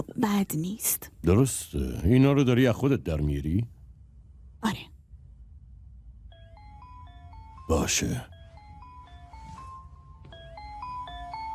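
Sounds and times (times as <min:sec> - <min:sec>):
speech: 0:00.2 - 0:03.8, 0:04.6 - 0:04.9, 0:07.7 - 0:08.3
telephone melodic electronic ringtone: 0:06.2 - 0:11.5.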